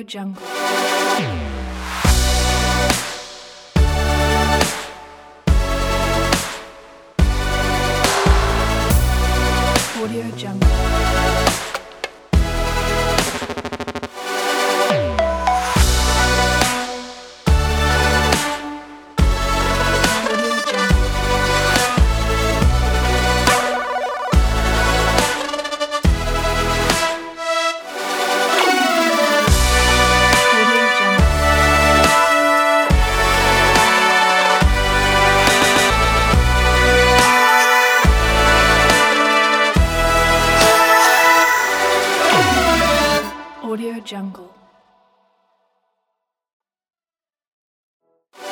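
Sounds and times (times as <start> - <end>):
modern urban style music: 0.5 - 43.7.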